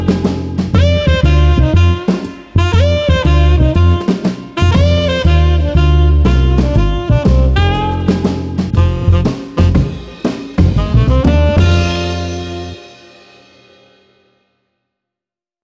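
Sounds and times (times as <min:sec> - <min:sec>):
jazz trio playing: 0:00.0 - 0:13.1.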